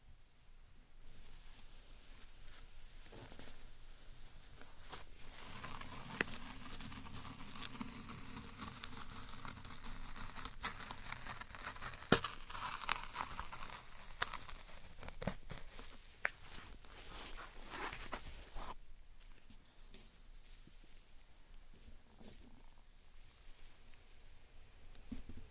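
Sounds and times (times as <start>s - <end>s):
slime and sand being handled, squishing and crinkling: 1.2s - 18.8s.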